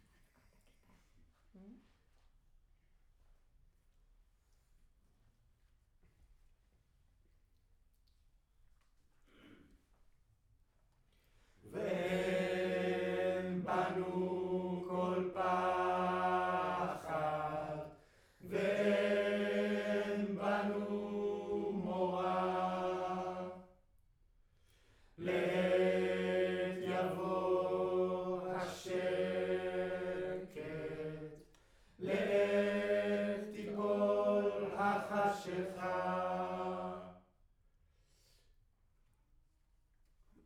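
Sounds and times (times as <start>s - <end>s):
choir singing in room: 11.7s - 23.8s, 25.2s - 37.3s.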